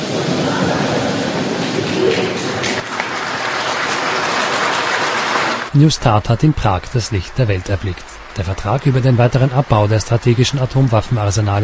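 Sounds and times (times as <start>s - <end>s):
audience applause in hall: 0.0s - 11.6s
speech: 5.8s - 11.6s.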